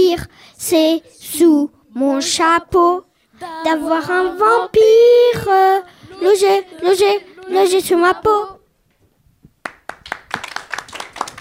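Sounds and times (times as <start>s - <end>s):
speech: 0.0s - 8.6s
applause: 9.6s - 11.3s.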